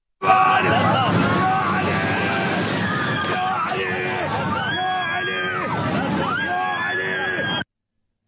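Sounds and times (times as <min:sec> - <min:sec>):
constant loud roar: 0:00.2 - 0:07.6
passengers screaming on an airliner: 0:00.2 - 0:07.6.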